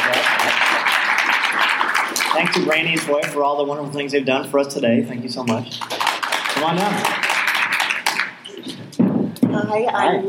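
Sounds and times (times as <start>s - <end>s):
audience applause: 0.0s - 3.5s, 5.7s - 8.6s
speech: 2.4s - 6.0s, 6.6s - 7.3s, 9.5s - 10.2s.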